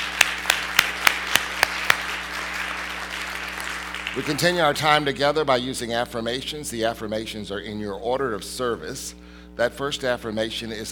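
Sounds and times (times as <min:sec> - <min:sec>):
audience applause: 0:00.0 - 0:04.8
speech: 0:04.2 - 0:10.9.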